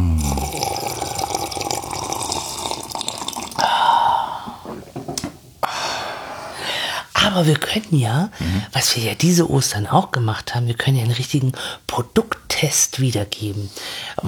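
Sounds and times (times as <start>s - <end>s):
freshly brewed coffee being poured: 0.2s - 4.5s
speech: 7.3s - 14.2s.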